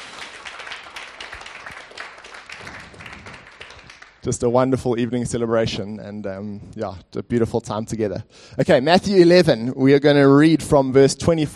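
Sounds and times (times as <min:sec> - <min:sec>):
crowd applauding: 0:00.0 - 0:04.3
speech: 0:04.2 - 0:11.5.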